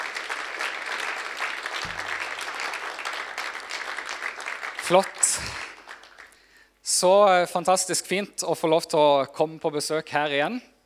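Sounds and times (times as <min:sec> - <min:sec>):
audience applause: 0:00.0 - 0:06.4
speech: 0:04.9 - 0:05.6, 0:07.0 - 0:10.7.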